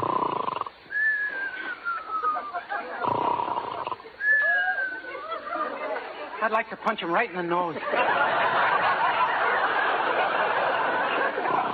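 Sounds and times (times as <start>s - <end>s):
person snoring: 0.0s - 0.7s, 3.0s - 4.0s
laughter: 1.7s - 3.4s, 4.0s - 6.5s, 7.8s - 11.7s
speech: 6.4s - 9.0s.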